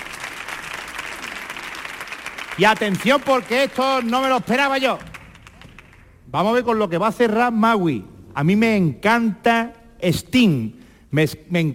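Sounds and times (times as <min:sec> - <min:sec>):
audience applause for a guitarist returning to the stage: 0:00.0 - 0:06.2
speech: 0:02.6 - 0:05.1, 0:06.3 - 0:11.7.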